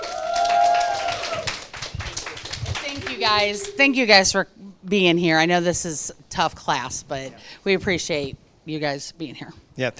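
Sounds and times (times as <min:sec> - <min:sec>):
round of applause: 0:00.0 - 0:03.8
speech: 0:03.2 - 0:09.9.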